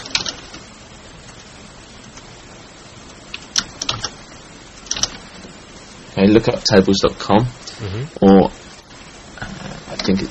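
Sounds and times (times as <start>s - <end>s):
typing a website address on a computer keyboard: 0.0s - 0.5s, 3.3s - 4.2s, 4.9s - 5.2s
low steady hum: 0.0s - 10.2s
speech: 6.2s - 8.6s, 10.1s - 10.2s.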